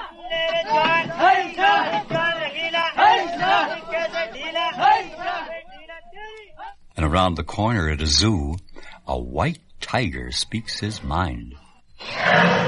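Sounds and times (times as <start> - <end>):
workmen shouting while loading a cement mixer onto a truck: 0.0 - 6.8
speech: 7.1 - 12.6.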